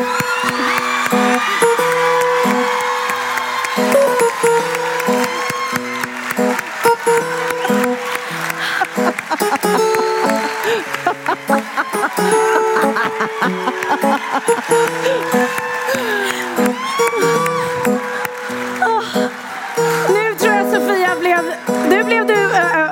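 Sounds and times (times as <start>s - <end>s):
warm applause: 0.0s - 22.9s
laughter: 6.5s - 21.2s.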